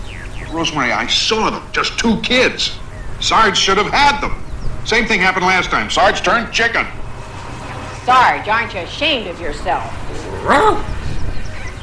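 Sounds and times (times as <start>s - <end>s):
low rumble: 0.0s - 11.8s
speech: 0.5s - 7.0s, 8.0s - 11.0s
dog barking: 10.0s - 11.0s.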